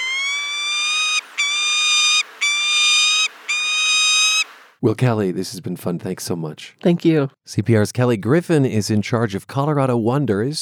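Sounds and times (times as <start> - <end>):
peregrine falcon call: 0.0 - 4.6
speech: 4.8 - 10.6.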